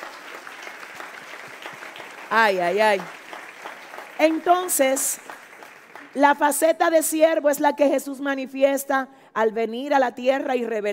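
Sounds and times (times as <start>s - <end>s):
loud audience applause: 0.0s - 6.5s
speech: 2.3s - 3.2s, 4.2s - 5.4s, 6.1s - 10.9s.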